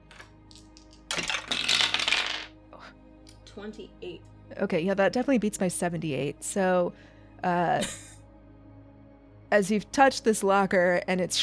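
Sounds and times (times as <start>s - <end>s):
dice rolling on hard surface: 0.0s - 2.5s
speech: 3.6s - 8.1s, 9.5s - 11.4s.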